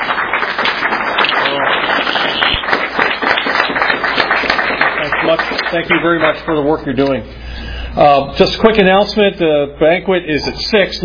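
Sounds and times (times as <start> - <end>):
audience applause: 0.0 - 6.8
speech: 5.7 - 7.4, 8.0 - 11.0.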